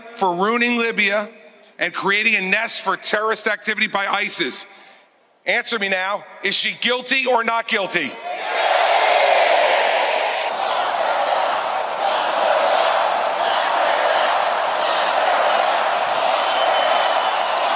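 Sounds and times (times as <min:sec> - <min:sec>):
speech: 0:00.2 - 0:08.3
crowd chanting at a political rally: 0:08.3 - 0:17.7.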